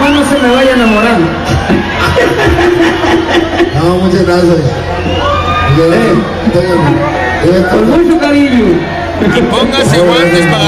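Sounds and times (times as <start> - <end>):
crowd shouting and cheering urging a kiss: 0.0 - 10.6
laughter: 1.4 - 4.5
speech: 4.4 - 5.2, 5.8 - 10.6.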